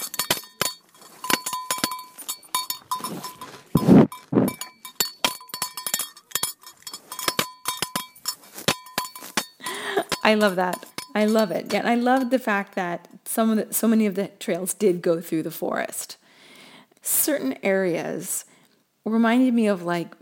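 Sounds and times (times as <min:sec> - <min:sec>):
cow munching grass in a forest: 0:00.0 - 0:09.6
bright metallic bell clinks: 0:00.0 - 0:12.4
speech: 0:10.3 - 0:16.2, 0:17.2 - 0:20.2.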